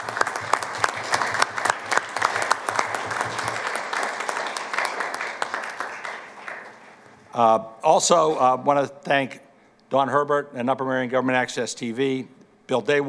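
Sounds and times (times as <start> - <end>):
audience applause: 0.0 - 7.3
speech: 7.4 - 13.0.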